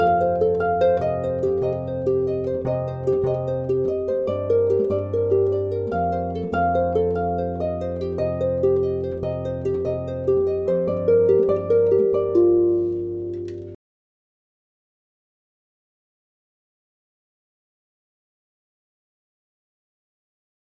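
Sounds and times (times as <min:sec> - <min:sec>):
harp piece: 0:00.0 - 0:13.8.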